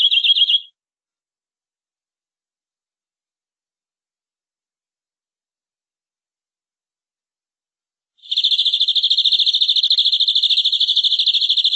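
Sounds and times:
canary song of sustained fast trill: 0.0s - 0.7s, 8.2s - 11.7s.

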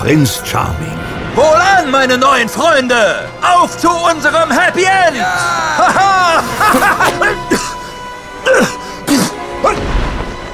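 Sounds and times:
speech: 0.0s - 7.6s
laughter: 5.4s - 7.8s
coughing fit: 5.9s - 9.8s.

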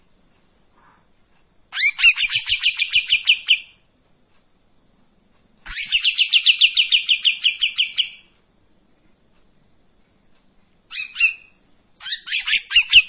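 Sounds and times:
Streak-eared bulbul buzzy chattering song: 1.7s - 3.8s, 5.6s - 8.4s, 10.9s - 13.0s.

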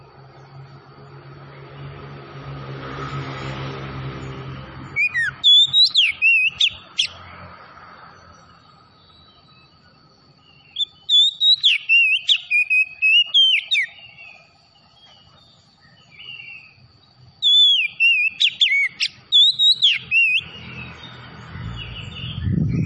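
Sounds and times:
oriental magpie-robin whistled song: 4.8s - 7.4s, 8.2s - 22.8s.

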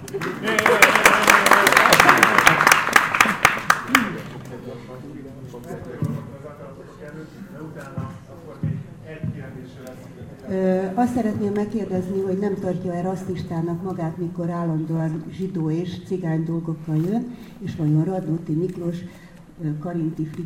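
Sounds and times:
audience applause: 0.0s - 4.3s
speech: 11.1s - 20.4s.

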